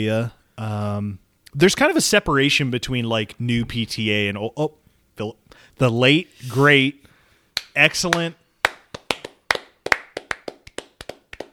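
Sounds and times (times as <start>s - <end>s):
speech: 0.0s - 7.1s, 7.8s - 8.4s
hands clapping: 7.6s - 11.5s.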